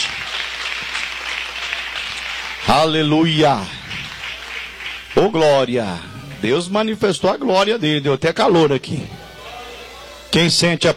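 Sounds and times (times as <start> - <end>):
church congregation clapping hands in praise: 0.0 - 7.0
speech: 2.7 - 3.8, 5.2 - 9.2, 10.3 - 10.9.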